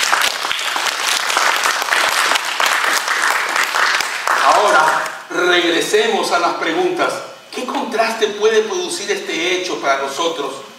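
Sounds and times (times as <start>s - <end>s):
crowd applauding: 0.0s - 5.2s
speech: 4.7s - 10.7s.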